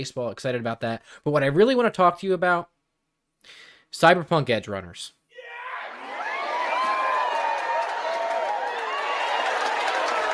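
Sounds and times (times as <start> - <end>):
speech: 0.0 - 2.7, 3.4 - 5.2
studio audience cheering and whooping sound effect: 5.4 - 10.3.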